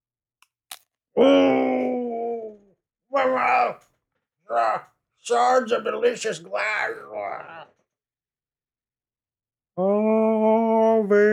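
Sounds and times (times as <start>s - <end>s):
crunchy bite of candy-filled sugar cookie: 0.4s - 1.0s
speech: 1.2s - 1.7s, 4.5s - 7.8s, 9.8s - 11.3s
voice moaning: 1.2s - 3.8s, 4.5s - 4.9s, 6.4s - 7.8s, 9.8s - 11.3s.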